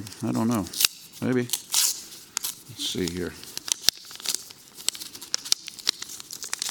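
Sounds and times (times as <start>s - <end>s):
speech: 0.0s - 1.6s, 2.7s - 3.5s
paper offering envelope opened during a church offering count: 0.4s - 6.7s.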